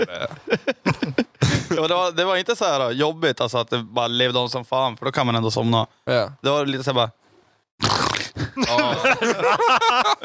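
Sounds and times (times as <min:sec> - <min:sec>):
speech: 0:00.0 - 0:00.6, 0:01.8 - 0:10.1
laughter: 0:00.0 - 0:01.8, 0:08.4 - 0:10.2
person imitating an aggressive snore: 0:07.8 - 0:08.4.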